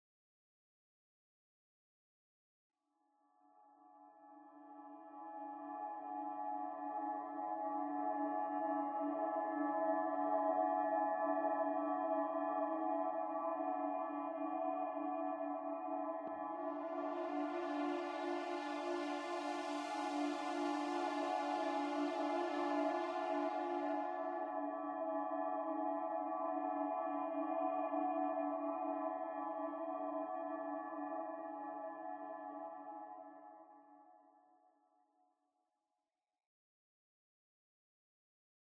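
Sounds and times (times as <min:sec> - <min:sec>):
ambient music: 0:05.0 - 0:33.5.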